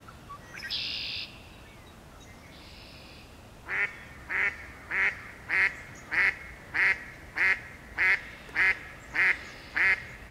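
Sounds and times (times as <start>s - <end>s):
female mallard calling from afar: 2.7s - 10.2s.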